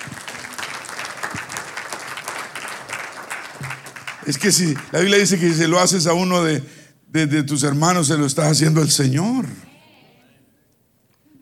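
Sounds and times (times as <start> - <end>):
audience applause: 0.0 - 5.6
speech: 4.3 - 9.7.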